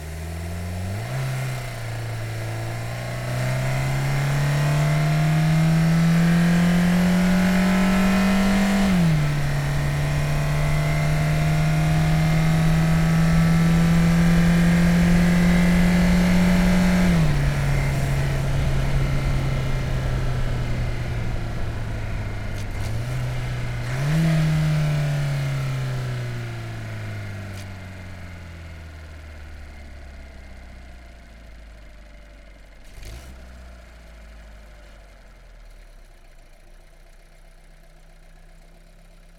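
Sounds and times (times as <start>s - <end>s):
VW Golf engine driving fast onboard: 0.0s - 30.1s.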